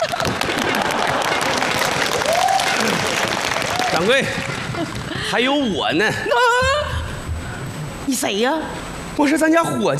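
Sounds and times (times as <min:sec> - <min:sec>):
crowd clapping: 0:00.0 - 0:05.2
speech: 0:04.0 - 0:06.8, 0:08.1 - 0:09.9.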